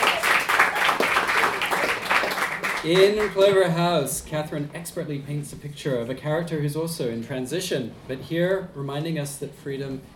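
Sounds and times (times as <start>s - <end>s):
audience applause: 0.0s - 3.4s
speech: 2.8s - 10.1s.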